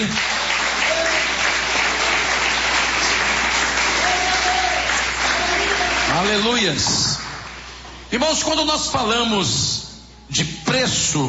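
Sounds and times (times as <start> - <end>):
audience clapping: 0.0 - 8.0
speech: 6.2 - 7.1, 8.1 - 11.2.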